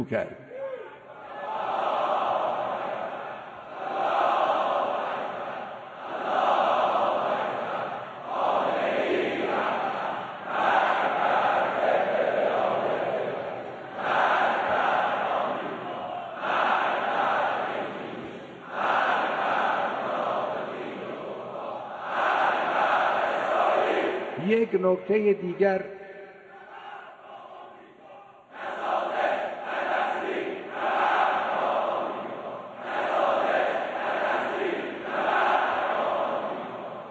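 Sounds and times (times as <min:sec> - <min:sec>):
speech: 0:00.0 - 0:00.4, 0:24.7 - 0:26.0
large crowd chanting cries of revenge in unison: 0:00.6 - 0:37.0.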